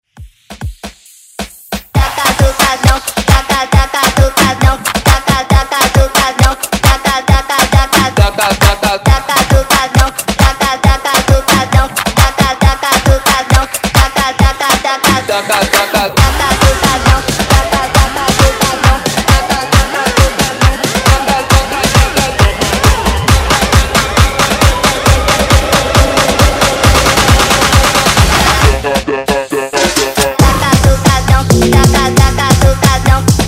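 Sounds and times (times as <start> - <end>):
dance music: 0.0 - 33.4.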